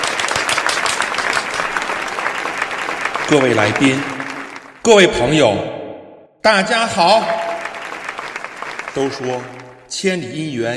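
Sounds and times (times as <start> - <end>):
crowd applause: 0.0 - 4.8, 6.8 - 9.9
speech: 3.3 - 4.1, 4.8 - 5.8, 6.4 - 7.4, 9.0 - 10.7.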